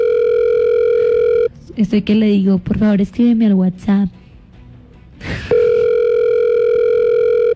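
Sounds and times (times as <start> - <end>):
telephone ringing tone on an unanswered call: 0.0 - 1.5, 5.5 - 7.5
speech: 1.8 - 4.2.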